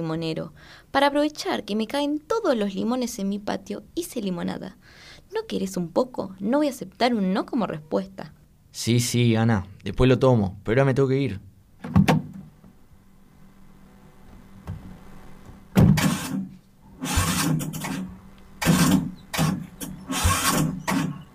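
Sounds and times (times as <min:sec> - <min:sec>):
speech: 0:00.0 - 0:12.1
car engine cranking but failing to start: 0:17.0 - 0:21.2.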